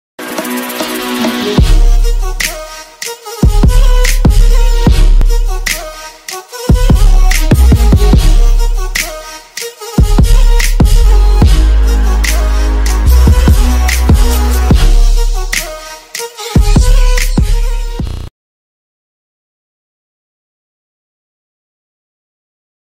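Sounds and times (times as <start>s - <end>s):
Arabic trap music ringtone: 0.4s - 18.0s.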